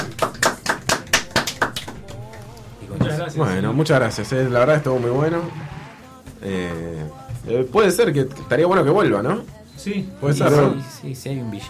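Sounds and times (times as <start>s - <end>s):
sparse clapping in a radio studio: 0.0s - 2.6s
speech: 3.3s - 5.8s, 6.4s - 11.6s.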